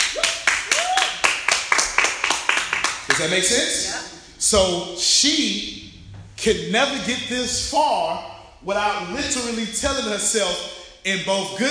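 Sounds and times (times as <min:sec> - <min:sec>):
group clapping: 0:00.0 - 0:03.6
speech: 0:03.2 - 0:05.8, 0:06.4 - 0:11.6.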